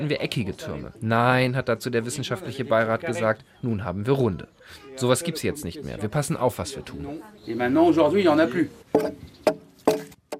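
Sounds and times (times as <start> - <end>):
speech: 0.0 - 9.6
axe shaving a wooden plank smooth: 9.0 - 10.3.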